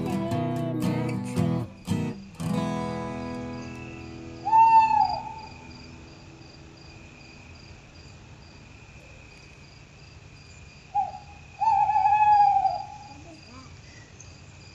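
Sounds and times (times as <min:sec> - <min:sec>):
crickets chirping: 0:00.0 - 0:14.7
owl hooting: 0:03.8 - 0:05.8, 0:11.0 - 0:14.1.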